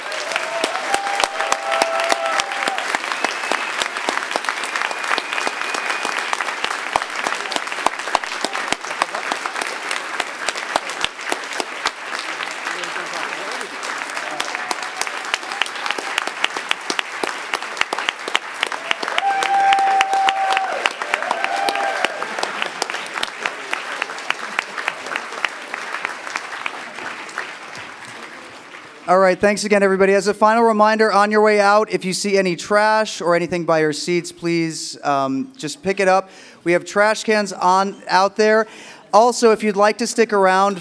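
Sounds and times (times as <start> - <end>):
audience applause: 0.0 - 29.4
speech: 29.2 - 40.7.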